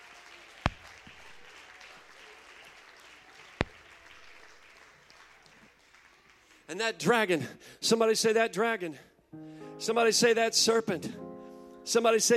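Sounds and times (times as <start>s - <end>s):
audience clapping hands: 0.0s - 6.8s
speech: 6.7s - 9.1s, 9.8s - 11.2s, 11.9s - 12.3s.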